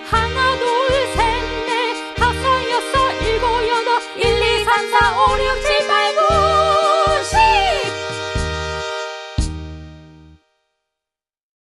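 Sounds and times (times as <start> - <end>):
Korean folk food song: 0.0 - 9.1.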